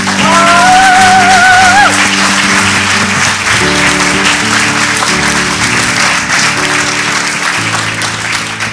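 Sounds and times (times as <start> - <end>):
church audience applauding: 0.0 - 8.7
organ or keyboard chords: 0.0 - 8.7.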